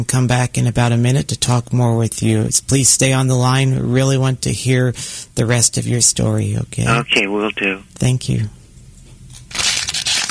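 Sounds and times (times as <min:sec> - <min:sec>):
speech: 0:00.0 - 0:08.6
disposable plastic water bottle crushed: 0:09.5 - 0:10.2.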